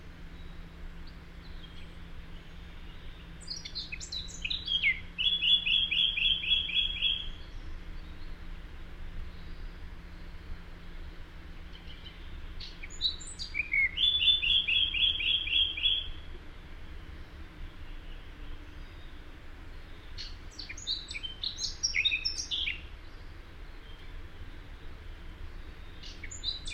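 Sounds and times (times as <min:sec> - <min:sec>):
low background hum: 0:00.0 - 0:26.7
Eurasian blackcap singing: 0:00.4 - 0:08.3, 0:11.7 - 0:16.2, 0:19.8 - 0:22.9, 0:25.5 - 0:26.7.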